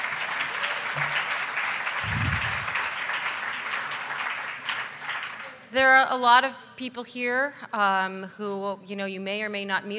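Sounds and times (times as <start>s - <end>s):
audience applause: 0.0s - 5.5s
speech: 5.7s - 9.9s.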